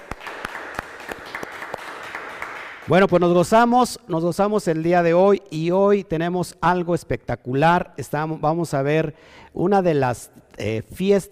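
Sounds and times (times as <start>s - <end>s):
audience applause: 0.0s - 2.9s
speech: 2.9s - 11.3s.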